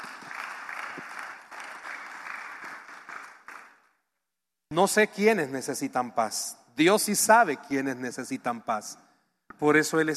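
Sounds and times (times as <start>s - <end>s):
audience applause: 0.0s - 3.8s
speech: 4.7s - 10.1s.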